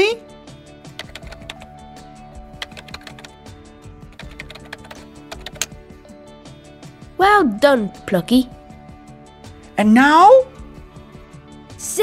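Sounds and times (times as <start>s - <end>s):
rapid typing on a computer keyboard writing an email: 1.0s - 1.7s, 2.6s - 3.4s, 4.1s - 5.8s
speech: 7.2s - 8.6s, 9.8s - 10.5s.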